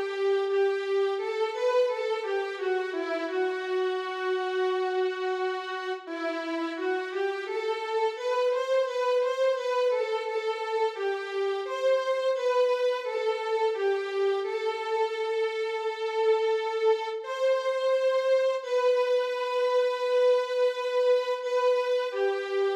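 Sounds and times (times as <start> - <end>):
violin playing slow foxtrot: 0.0 - 22.7.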